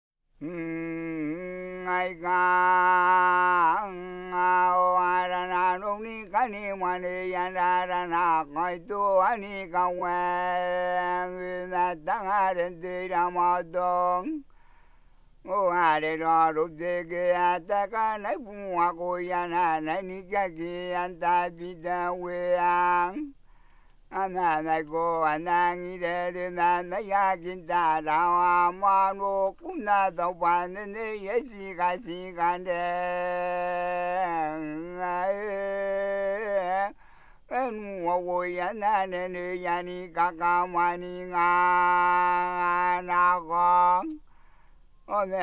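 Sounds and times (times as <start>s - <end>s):
chanting: 0.4s - 14.4s, 15.5s - 23.3s, 24.1s - 44.2s.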